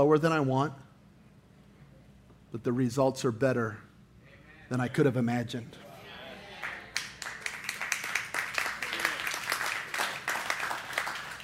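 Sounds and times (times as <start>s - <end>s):
speech: 0.0s - 0.8s, 2.5s - 3.9s, 4.7s - 5.8s
sparse half-hearted audience applause in a reverberant room: 6.6s - 11.4s.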